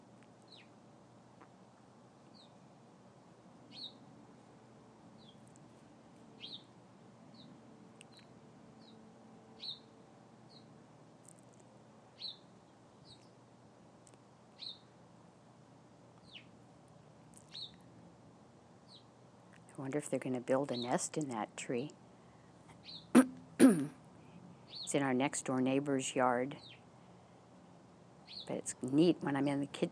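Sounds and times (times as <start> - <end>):
low steady hum of noise: 0.0 - 29.9
small birds chirping in a tree: 0.4 - 0.8, 2.2 - 2.7, 3.6 - 4.1, 5.2 - 5.7, 6.4 - 15.0, 16.2 - 16.6, 17.3 - 17.9, 18.8 - 19.7, 22.7 - 23.3, 24.6 - 25.1, 26.5 - 26.9, 28.2 - 29.9
speech: 19.8 - 22.0, 24.9 - 26.8, 28.5 - 29.9.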